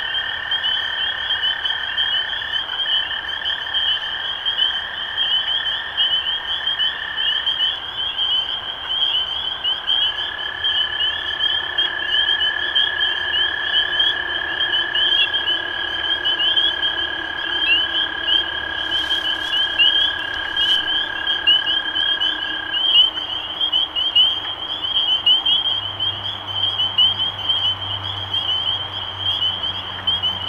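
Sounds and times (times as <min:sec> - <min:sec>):
spring peeper chorus: 0:00.0 - 0:30.4
low hum: 0:15.3 - 0:23.7.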